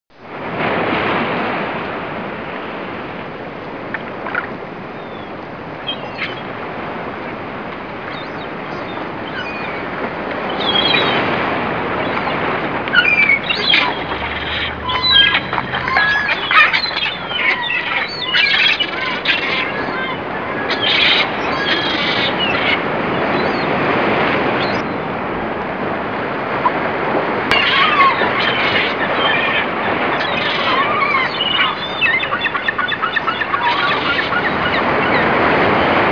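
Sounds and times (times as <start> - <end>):
sea: 0.1 - 36.1.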